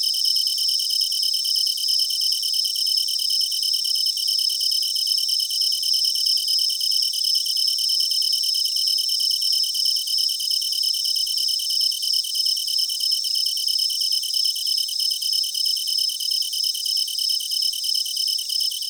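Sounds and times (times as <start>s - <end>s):
tree cricket chirping in bush: 0.0s - 18.8s.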